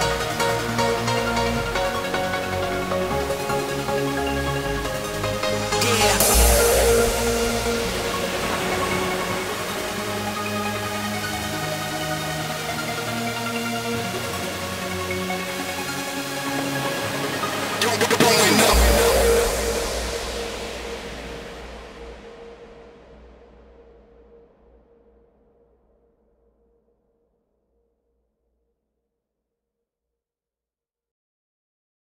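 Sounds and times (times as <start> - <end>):
hardstyle music: 0.0 - 22.5.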